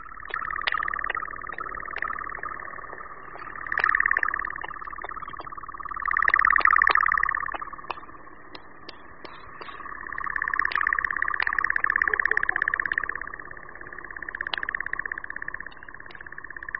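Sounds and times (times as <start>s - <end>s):
European nightjar churring trill: 0.0s - 16.7s
sharp clicks: 0.2s - 13.1s.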